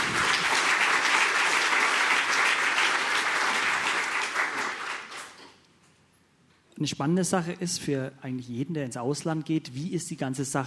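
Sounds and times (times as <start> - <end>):
audience clapping: 0.0 - 5.6
speech: 6.8 - 10.6.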